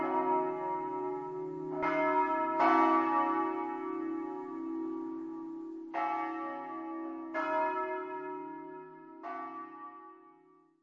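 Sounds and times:
bells ringing: 0.0 - 8.3.

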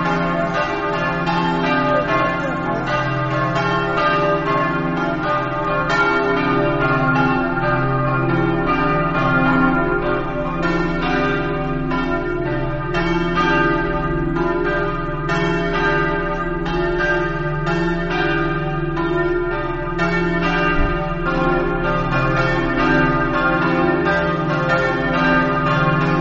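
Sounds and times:
church bells of Santa Maria: 0.0 - 26.2.

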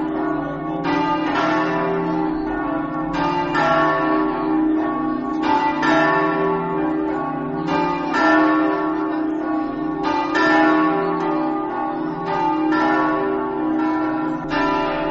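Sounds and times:
bells ringing in Forgaria: 0.0 - 15.1.

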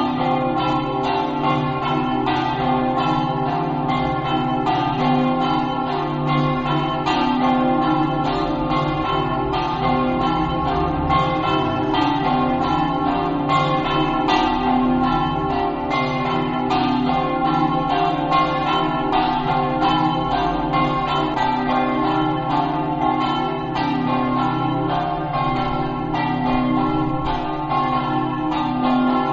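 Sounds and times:
bells ringing in Paderno: 0.0 - 29.3.

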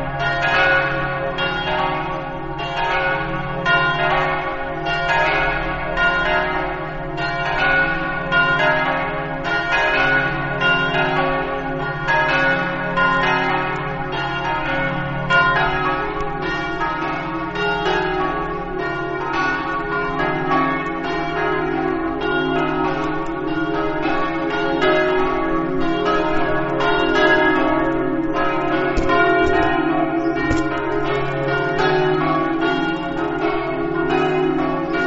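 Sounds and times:
church bells ringing: 0.0 - 35.0.

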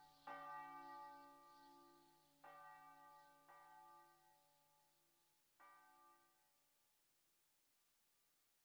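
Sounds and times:
church bells ringing: 0.0 - 4.3.

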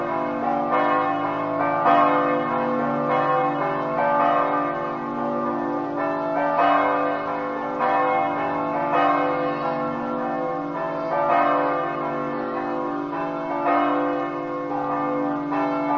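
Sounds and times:
church bells ringing in Kobarid: 0.0 - 15.9.

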